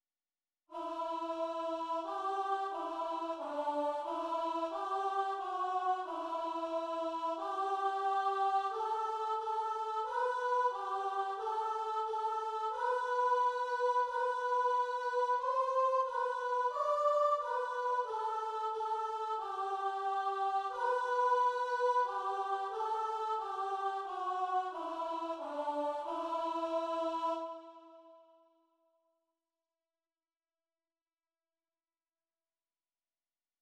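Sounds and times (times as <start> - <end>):
soprano voice: 0.8 - 27.6.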